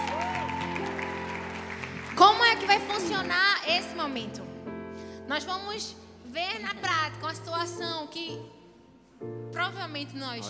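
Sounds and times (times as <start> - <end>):
audience applause: 0.0 - 3.8
speech: 2.7 - 4.5, 5.3 - 8.6, 9.2 - 10.4.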